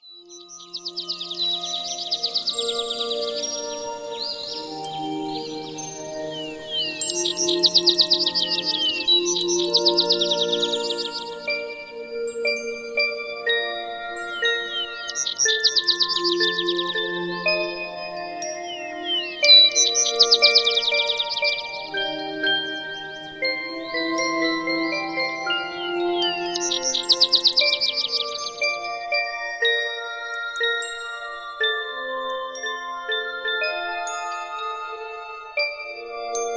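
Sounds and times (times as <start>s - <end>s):
fairy tale intro music: 0.0s - 36.5s.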